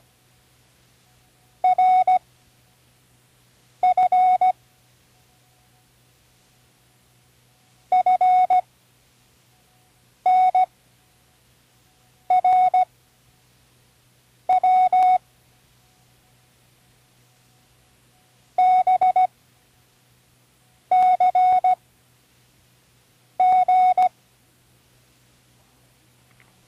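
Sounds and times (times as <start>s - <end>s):
morse code beeps for learning: 1.6s - 2.2s, 3.8s - 4.6s, 7.9s - 8.6s, 10.2s - 10.7s, 12.3s - 12.9s, 14.5s - 15.2s, 18.6s - 19.3s, 20.9s - 21.8s, 23.4s - 24.1s.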